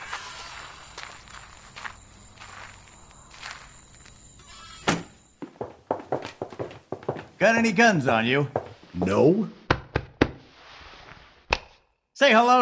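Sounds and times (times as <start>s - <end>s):
footsteps of people walking inside: 0.1s - 9.7s
speech: 7.4s - 9.6s, 12.2s - 12.5s.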